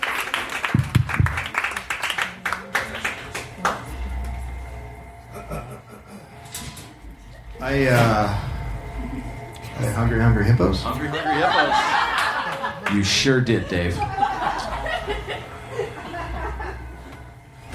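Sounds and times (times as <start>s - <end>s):
audience applause: 0.0s - 4.3s, 11.4s - 15.4s
laughter: 5.2s - 6.7s, 8.2s - 17.7s
speech: 7.6s - 8.4s, 9.8s - 12.0s, 12.9s - 14.2s.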